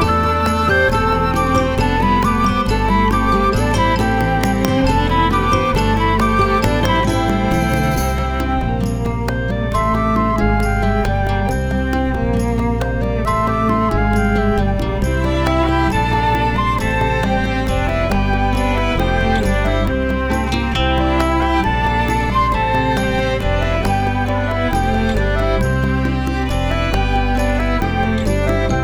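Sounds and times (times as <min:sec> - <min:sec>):
instrumental music: 0:00.0 - 0:28.8.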